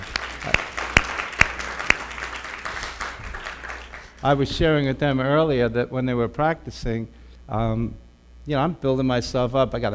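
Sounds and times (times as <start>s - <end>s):
audience applause: 0.0s - 4.3s
speech: 0.4s - 0.6s, 4.2s - 9.9s.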